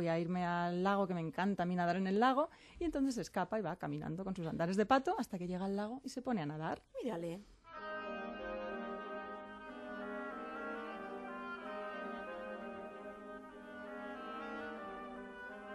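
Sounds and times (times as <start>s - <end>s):
speech: 0.0s - 7.5s
oboe playing a melody: 7.7s - 15.7s.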